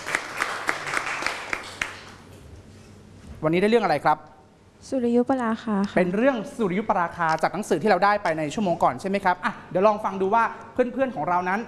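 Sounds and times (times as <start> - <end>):
audience applause: 0.0 - 2.2
speech: 3.4 - 11.6.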